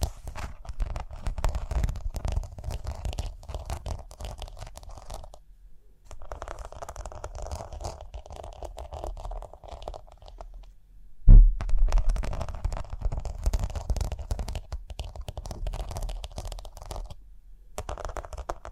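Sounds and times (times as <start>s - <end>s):
scratching and brushing on rhinestones: 0.0s - 5.4s, 6.1s - 10.7s, 11.6s - 17.2s, 17.8s - 18.7s
sharp knock: 11.3s - 11.9s.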